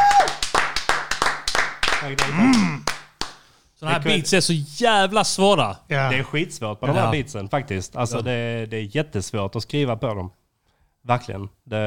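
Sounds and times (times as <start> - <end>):
applause: 0.0 - 3.5
speech: 2.0 - 2.8, 3.8 - 10.4, 11.0 - 11.8.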